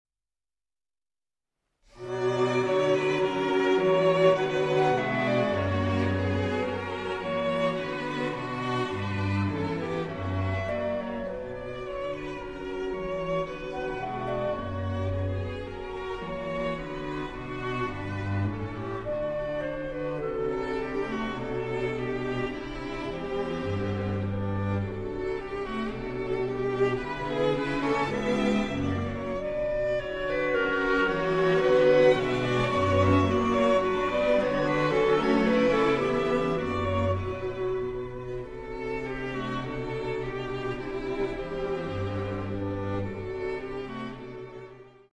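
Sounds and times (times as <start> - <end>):
clarinet quintet playing in B minor: 2.0 - 44.4.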